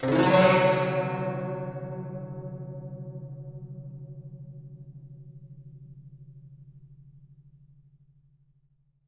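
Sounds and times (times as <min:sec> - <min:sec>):
guqin plucked: 0:00.0 - 0:03.4.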